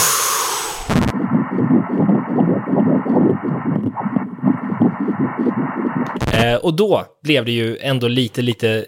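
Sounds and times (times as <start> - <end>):
burst of noise: 0.0 - 6.6
fetal heartbeat on ultrasound: 1.0 - 6.5
speech: 6.4 - 8.8.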